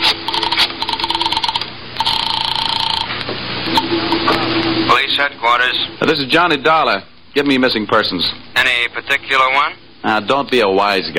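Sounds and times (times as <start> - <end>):
telephone ringing: 0.0 - 4.0
speech: 5.2 - 11.1.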